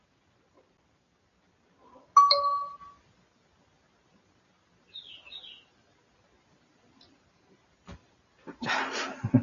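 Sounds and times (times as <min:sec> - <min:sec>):
WhatsApp message notification dings: 0:02.2 - 0:03.0.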